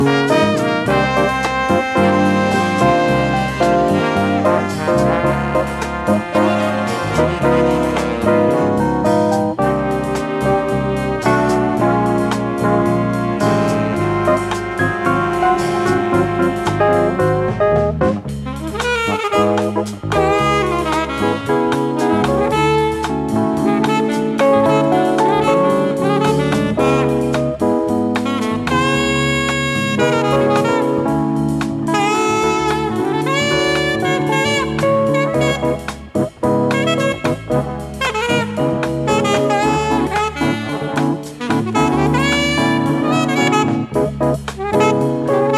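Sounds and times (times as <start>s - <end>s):
brass and wind instruments: 0.0s - 45.5s.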